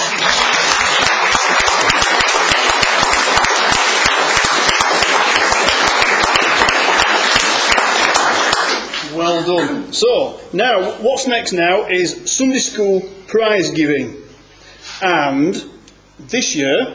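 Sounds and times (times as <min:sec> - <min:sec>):
round of applause: 0:00.0 - 0:09.2
speech: 0:09.5 - 0:14.2, 0:14.8 - 0:16.9.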